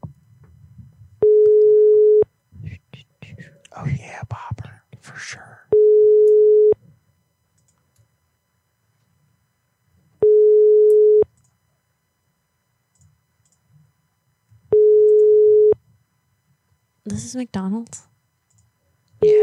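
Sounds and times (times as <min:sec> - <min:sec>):
phone ringing tone: 0:01.2 - 0:02.2, 0:05.8 - 0:06.8, 0:10.2 - 0:11.3, 0:14.7 - 0:15.8
speech: 0:17.1 - 0:18.1.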